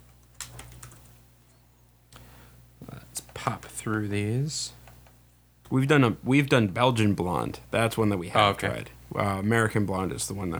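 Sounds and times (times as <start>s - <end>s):
typing on a computer keyboard: 0.0s - 1.2s
speech: 3.4s - 4.8s, 5.7s - 10.5s.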